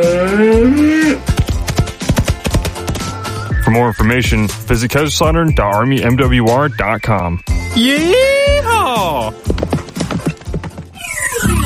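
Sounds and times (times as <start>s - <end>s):
bull mooing: 0.0s - 1.3s
sharp uneven thumping beats: 1.2s - 7.8s, 8.5s - 11.0s
speech: 3.8s - 9.8s.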